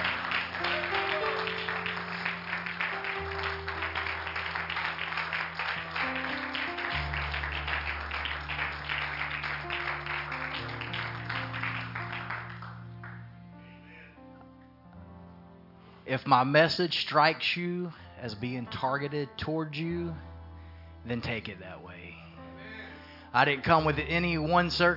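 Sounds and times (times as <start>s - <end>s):
audience clapping hands in praise: 0.0s - 13.5s
speech: 16.1s - 20.3s, 21.0s - 22.0s, 23.3s - 24.9s.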